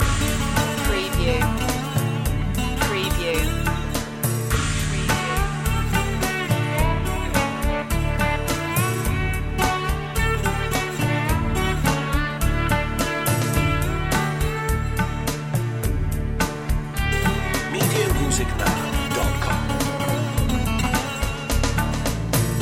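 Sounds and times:
Bombay blues music loop: 0.0s - 22.5s.

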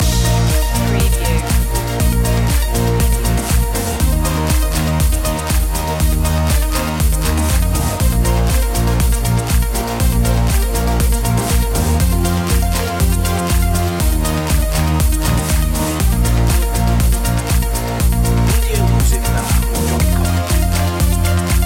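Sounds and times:
electronica electropop underscore: 0.0s - 21.6s.

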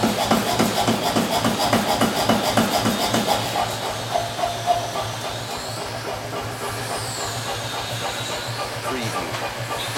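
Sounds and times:
blacksmith forge ambience: 0.0s - 9.9s.

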